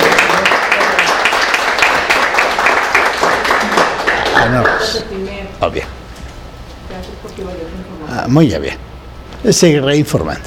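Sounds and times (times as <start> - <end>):
audience applause: 0.0 - 5.2
speech: 4.4 - 6.0, 7.3 - 10.4.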